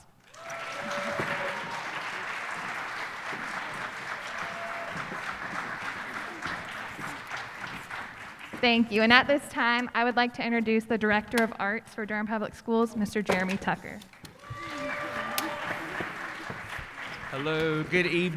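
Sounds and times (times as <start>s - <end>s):
audience round of applause: 0.0s - 8.9s, 14.3s - 18.3s
speech: 8.6s - 14.1s, 17.4s - 18.3s.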